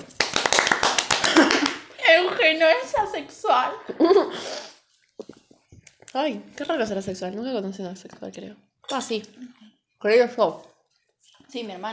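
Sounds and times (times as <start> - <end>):
short round of applause: 0.0 - 2.5
speech: 2.4 - 4.6, 6.1 - 10.7, 11.5 - 11.9
laughter: 3.8 - 4.4.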